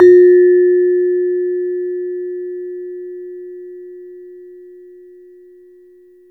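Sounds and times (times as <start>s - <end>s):
saron gamelan metallophone note F: 0.0s - 0.7s.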